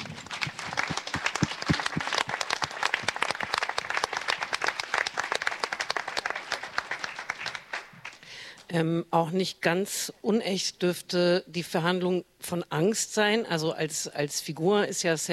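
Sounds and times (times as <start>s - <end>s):
applause: 0.0s - 8.6s
speech: 8.7s - 15.3s.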